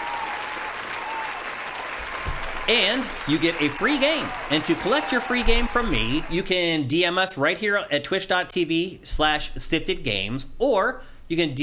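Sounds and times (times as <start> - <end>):
round of applause: 0.0 - 6.6
speech: 2.7 - 11.6.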